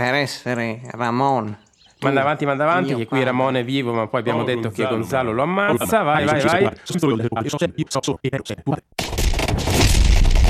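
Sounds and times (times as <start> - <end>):
speech: 0.0 - 9.9
explosions in a fight scene: 9.0 - 10.4.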